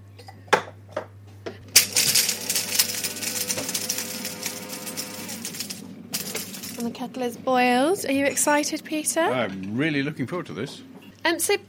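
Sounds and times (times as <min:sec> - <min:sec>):
coffee beans being ground: 0:01.7 - 0:07.0
speech: 0:06.8 - 0:11.6.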